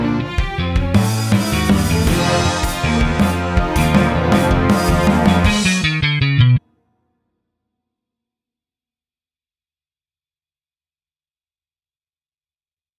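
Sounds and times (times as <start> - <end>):
song intro to prechorus: 0.0 - 6.7.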